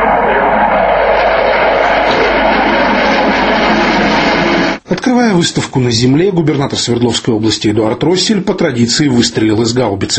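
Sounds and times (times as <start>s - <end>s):
Su-27 fighter jets performing aerobatic flyover: 0.0s - 4.8s
speech: 5.2s - 10.1s.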